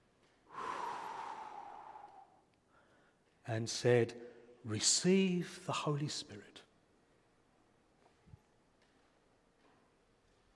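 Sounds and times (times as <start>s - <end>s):
person breathing out forcefully onto people as a demonstration: 0.5s - 3.0s
speech: 3.5s - 6.7s.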